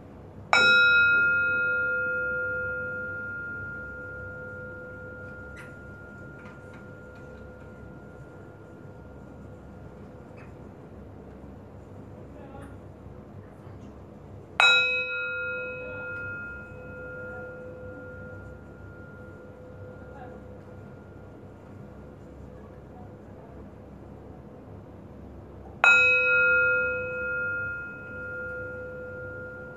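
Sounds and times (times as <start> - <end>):
bell rung during a relaxation session: 0.6 - 10.4, 14.6 - 22.0, 25.8 - 29.7.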